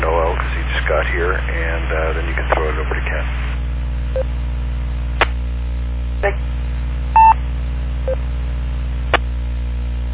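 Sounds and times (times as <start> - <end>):
low radio hum: 0.0 - 10.1
speech: 1.1 - 3.6
EchoLink disconnect beeps: 7.2 - 7.4.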